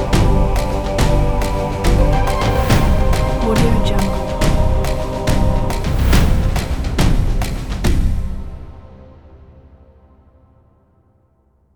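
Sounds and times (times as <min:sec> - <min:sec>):
quiz show choral timer music: 0:00.0 - 0:09.0.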